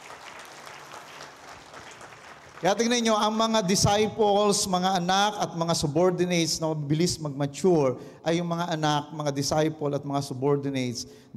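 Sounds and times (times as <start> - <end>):
audience clapping loudly: 0.0 - 3.5
speech: 2.6 - 11.3.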